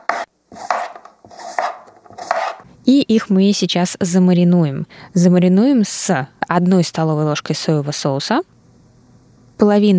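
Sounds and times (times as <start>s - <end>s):
knife chopping pork belly into cubes on a board: 0.0s - 2.6s
speech: 2.9s - 8.6s, 9.6s - 9.9s.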